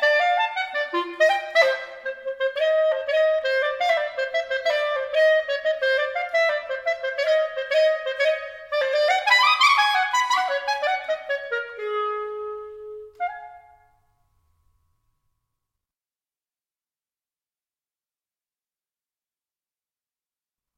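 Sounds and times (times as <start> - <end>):
solo clarinet: 0.0 - 14.1.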